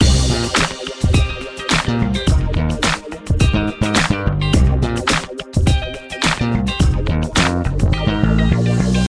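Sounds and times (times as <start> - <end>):
funk music: 0.0 - 9.0.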